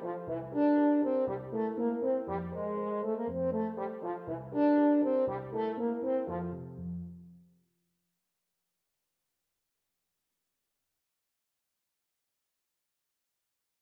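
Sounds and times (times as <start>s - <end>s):
French horn: 0.0s - 7.2s.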